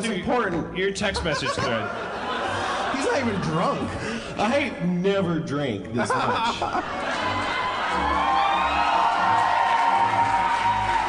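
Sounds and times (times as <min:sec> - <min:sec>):
speech: 0:00.0 - 0:02.2, 0:03.2 - 0:07.2
laughter: 0:00.9 - 0:04.7, 0:05.9 - 0:08.6
live audience applauding and cheering: 0:06.8 - 0:11.0.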